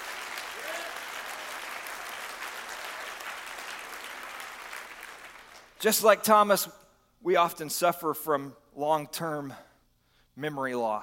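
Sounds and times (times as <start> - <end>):
audience clapping hands: 0.0 - 5.8
speech: 5.8 - 9.7, 10.4 - 11.0.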